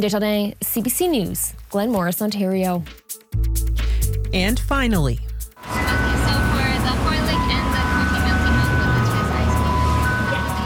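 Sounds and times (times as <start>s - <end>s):
speech: 0.0s - 7.0s
ice cream truck jingle in Richmond, British Columbia: 5.6s - 10.6s.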